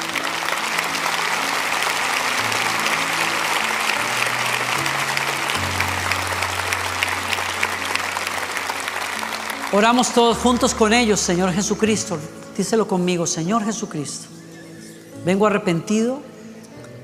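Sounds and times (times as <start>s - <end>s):
large audience applause: 0.0s - 12.2s
speech: 9.8s - 14.3s, 15.2s - 16.3s.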